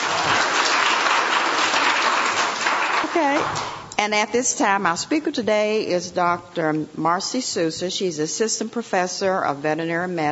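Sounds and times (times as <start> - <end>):
audience round of applause: 0.0 - 3.8
speech: 3.2 - 10.3.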